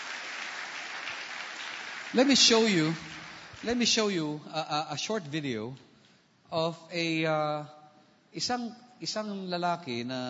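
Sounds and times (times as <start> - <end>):
church congregation applauding during a worship service: 0.0 - 4.2
speech: 2.1 - 5.9, 6.5 - 10.2.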